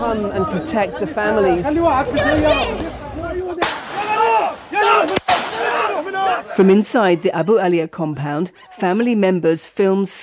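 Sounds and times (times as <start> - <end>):
raised voices shouting: 0.0 - 7.7
speech: 0.1 - 3.0, 6.6 - 10.2
gunshots fired in a village: 3.6 - 6.1.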